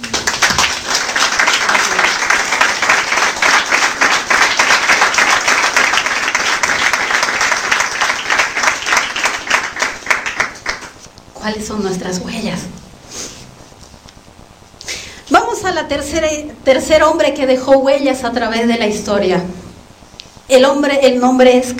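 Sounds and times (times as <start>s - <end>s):
audience applauding: 0.0s - 11.1s
speech: 11.5s - 12.8s, 15.7s - 19.6s, 20.5s - 21.7s.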